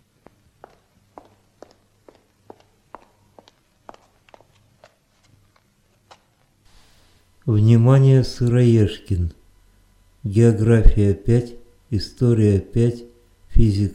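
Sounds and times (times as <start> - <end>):
clicking footsteps: 0.0 - 6.6
faint hum: 0.0 - 13.9
speech: 7.5 - 9.4, 10.2 - 13.9.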